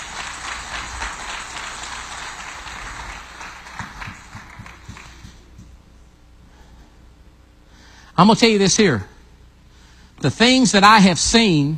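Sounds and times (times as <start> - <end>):
audience hand clapping: 0.0 - 5.8
speech: 8.2 - 9.1, 10.2 - 11.7.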